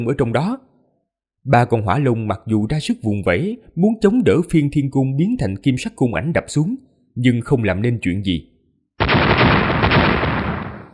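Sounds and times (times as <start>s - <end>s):
speech: 0.0s - 0.7s, 1.4s - 8.5s
huge explosion: 9.0s - 10.9s.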